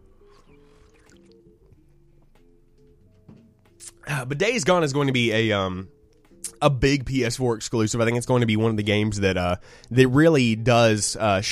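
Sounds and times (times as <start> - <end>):
person sipping a drink: 0.2 - 1.4
speech: 4.0 - 6.0, 6.6 - 11.5.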